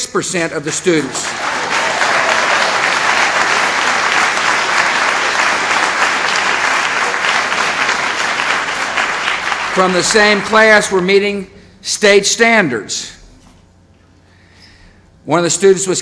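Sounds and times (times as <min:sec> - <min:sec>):
speech: 0:00.1 - 0:01.7, 0:09.8 - 0:13.2, 0:15.2 - 0:15.9
audience applause: 0:00.9 - 0:10.9.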